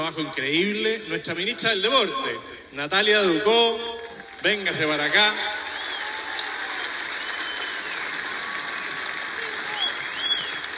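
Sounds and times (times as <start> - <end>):
speech: 0.0 - 5.6
audience applause: 4.0 - 10.7.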